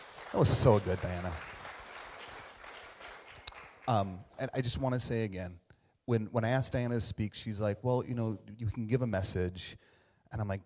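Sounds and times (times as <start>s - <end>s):
audience applause: 0.0s - 4.0s
speech: 0.3s - 1.5s, 3.9s - 10.6s.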